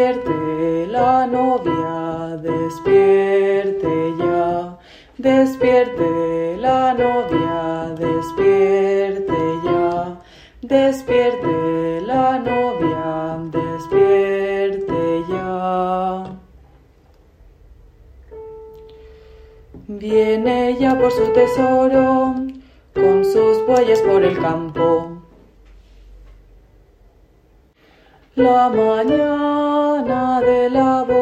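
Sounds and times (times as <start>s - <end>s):
tenor singing: 0.0s - 16.5s, 19.8s - 25.3s, 28.4s - 31.2s.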